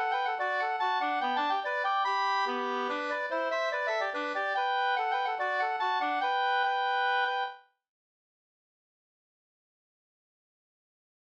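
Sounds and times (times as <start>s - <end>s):
mazurka music: 0.0s - 7.5s.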